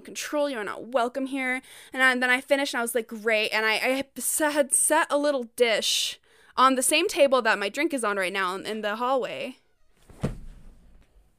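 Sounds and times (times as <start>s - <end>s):
speech: 0.1s - 9.6s
creak of something opening in the room: 9.7s - 11.2s.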